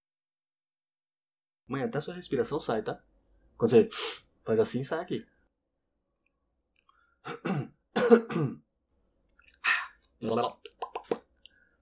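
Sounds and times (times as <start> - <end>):
speech: 1.7 - 5.3, 7.2 - 8.6, 10.2 - 10.6
person coughing in a choking fit: 7.3 - 8.6.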